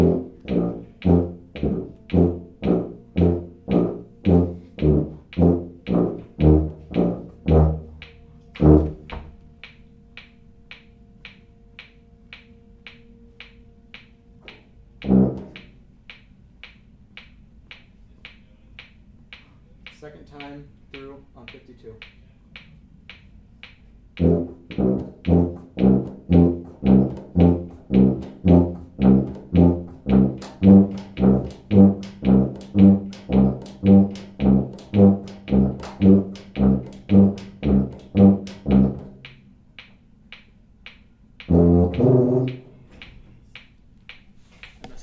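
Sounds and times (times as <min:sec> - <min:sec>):
tuba: 0:00.0 - 0:15.8, 0:24.2 - 0:39.4, 0:41.4 - 0:43.2.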